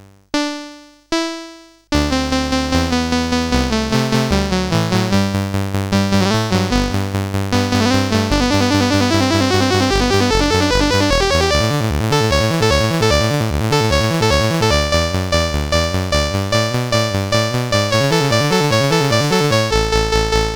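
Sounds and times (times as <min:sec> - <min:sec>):
MOS 8580 SID chip game music: 0:00.3 - 0:20.5.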